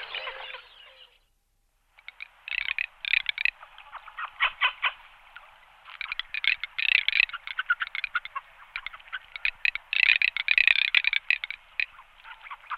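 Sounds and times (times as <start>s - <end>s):
garganey dry rattle call: 2.0s - 3.6s, 5.9s - 12.0s.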